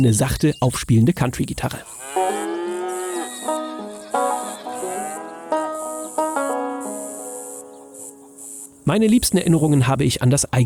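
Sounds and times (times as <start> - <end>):
speech: 0.0 - 2.0, 8.9 - 10.6
insects chirping: 0.0 - 9.9
cows mooing in open farm setting: 2.0 - 6.0.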